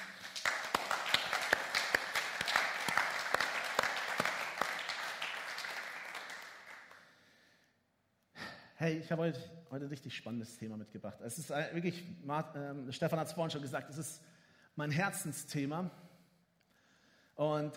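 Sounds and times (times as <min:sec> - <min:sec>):
audience applause: 0:00.0 - 0:07.0
speech: 0:08.8 - 0:16.0, 0:17.4 - 0:17.7.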